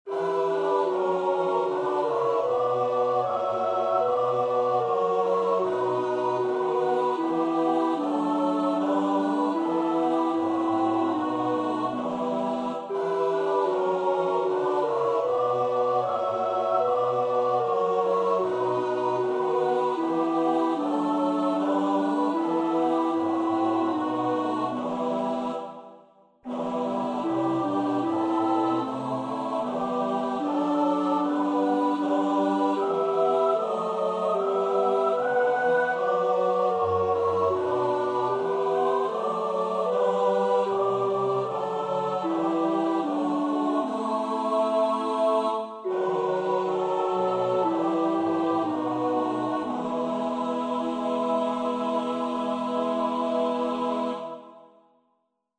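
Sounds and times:
alto choir part practice singing: 0.0 - 54.9.

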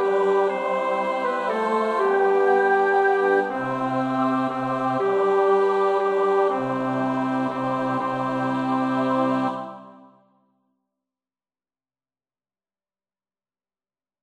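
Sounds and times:
bass voice singing a carol verse: 0.0 - 9.9.

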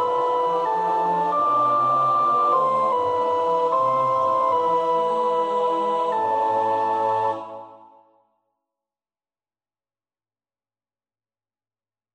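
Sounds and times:
soprano singing: 0.0 - 8.1.

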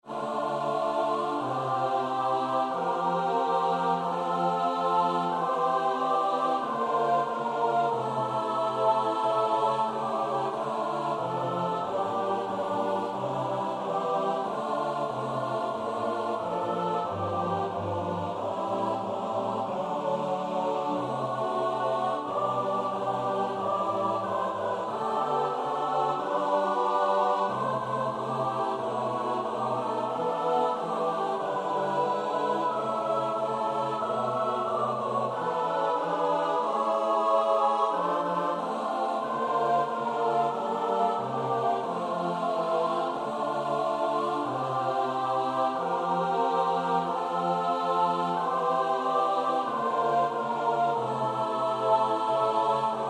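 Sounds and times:
SATB choir part practice: 0.0 - 53.0.

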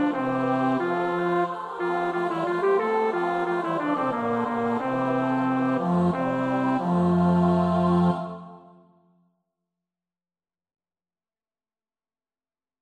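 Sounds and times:
bass choir part practice: 0.0 - 8.8.

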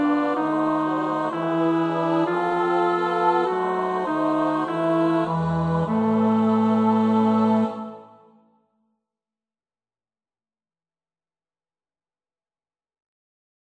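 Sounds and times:
bass choir part: 0.0 - 8.3.

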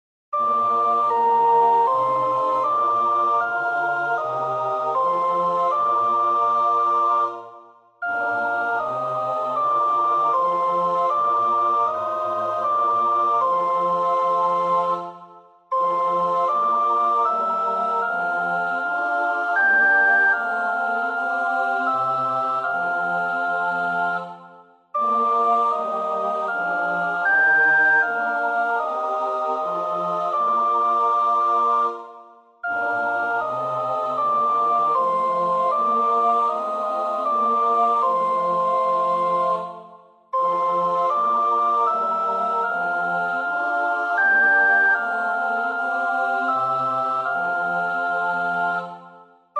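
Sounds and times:
soprano practising a choir part: 0.4 - 49.5.

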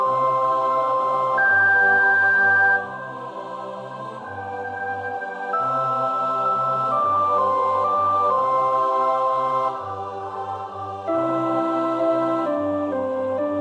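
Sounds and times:
first soprano voice singing a carol verse: 0.0 - 13.5.

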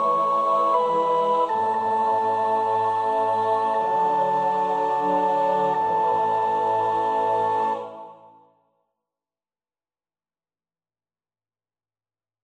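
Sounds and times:
soprano singing: 0.0 - 8.4.

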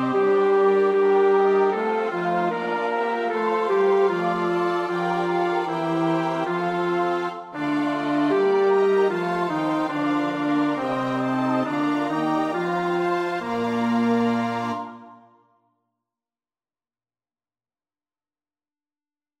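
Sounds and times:
bass: 0.0 - 14.9.

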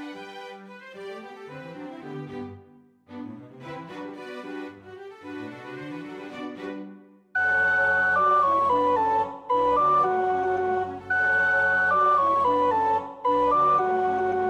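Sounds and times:
soprano singing: 7.4 - 14.4.

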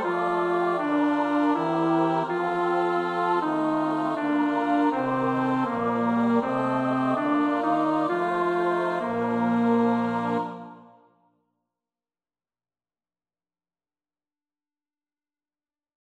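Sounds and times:
bass: 0.0 - 10.5.

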